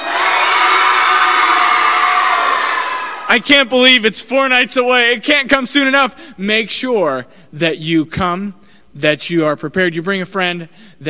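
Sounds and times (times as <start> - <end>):
children cheering loudly: 0.0 - 3.3
speech: 3.3 - 11.0.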